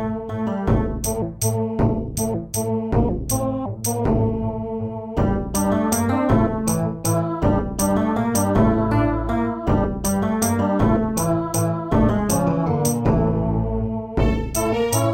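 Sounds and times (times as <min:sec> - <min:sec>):
modular synthesizer mixer: 0:00.0 - 0:15.1.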